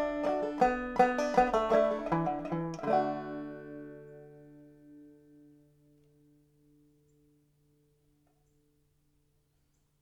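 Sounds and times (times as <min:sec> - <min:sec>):
slow banjo: 0:00.0 - 0:06.3.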